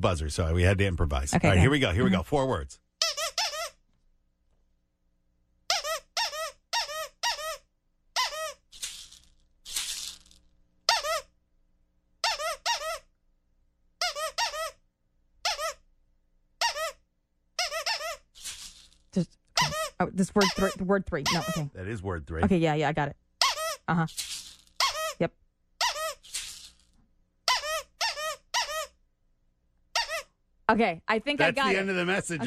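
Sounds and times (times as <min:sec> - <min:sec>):
speech: 0:00.0 - 0:02.8, 0:20.0 - 0:23.3, 0:23.9 - 0:24.3, 0:25.2 - 0:25.4, 0:30.7 - 0:32.4
squeaky dog toy squeaking: 0:03.0 - 0:03.8, 0:05.6 - 0:08.7, 0:10.8 - 0:11.4, 0:12.2 - 0:13.1, 0:14.0 - 0:14.8, 0:15.4 - 0:15.9, 0:16.6 - 0:18.8, 0:19.6 - 0:21.8, 0:23.4 - 0:26.8, 0:27.4 - 0:29.0, 0:29.9 - 0:30.4
maraca shaking: 0:08.7 - 0:10.4.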